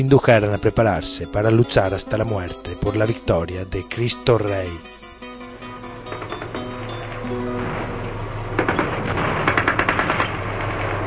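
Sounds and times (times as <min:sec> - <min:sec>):
speech: 0:00.0 - 0:05.0
grenade explosion: 0:06.2 - 0:11.0
low steady rumble: 0:06.5 - 0:11.0
rapid gunfire of an attack: 0:08.6 - 0:10.8.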